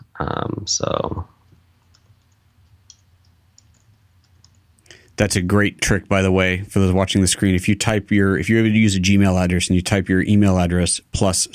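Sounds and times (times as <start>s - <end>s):
speech: 0.2s - 1.3s, 5.2s - 11.5s
computer mouse clicks on a website: 1.5s - 4.6s.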